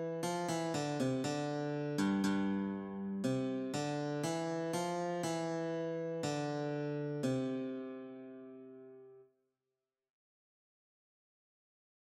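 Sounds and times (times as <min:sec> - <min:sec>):
guitar playing a carol: 0:00.2 - 0:05.6, 0:06.2 - 0:08.9.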